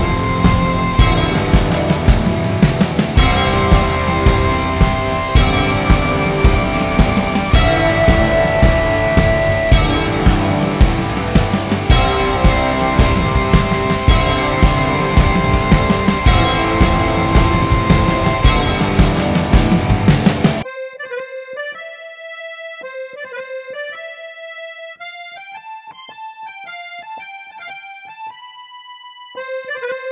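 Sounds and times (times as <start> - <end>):
jig tune: 0.0 - 21.2.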